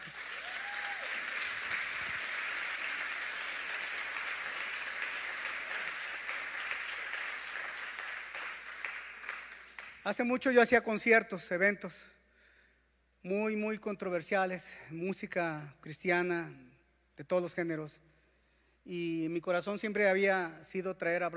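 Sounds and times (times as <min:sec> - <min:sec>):
audience applause: 0:00.0 - 0:10.0
speech: 0:10.1 - 0:12.2, 0:13.2 - 0:18.1, 0:18.9 - 0:21.3.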